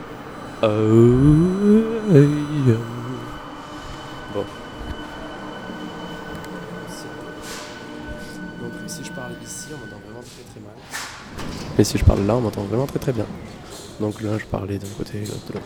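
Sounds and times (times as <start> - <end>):
metro train arriving at station platform: 0.0 - 15.6
speech: 0.6 - 2.9, 4.4 - 4.6, 11.8 - 15.6.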